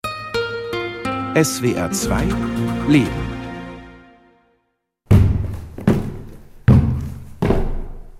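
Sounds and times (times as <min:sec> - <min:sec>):
speech: 0:01.4 - 0:03.4
crutches thumping up a staircase: 0:05.0 - 0:08.1.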